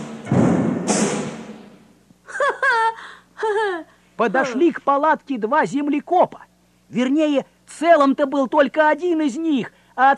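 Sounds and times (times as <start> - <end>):
heavy frightening footsteps: 0.2 - 1.8
laughter: 2.3 - 4.6
speech: 4.2 - 10.1.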